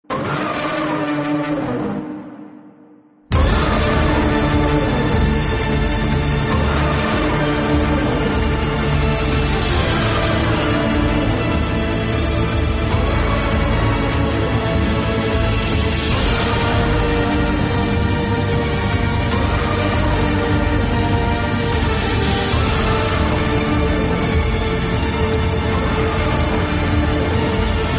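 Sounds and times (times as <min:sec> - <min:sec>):
background music: 0:00.0 - 0:27.9.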